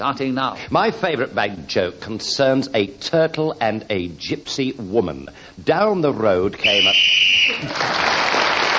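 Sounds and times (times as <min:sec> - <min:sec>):
speech: 0:00.0 - 0:08.6
referee whistle blown: 0:06.6 - 0:07.6.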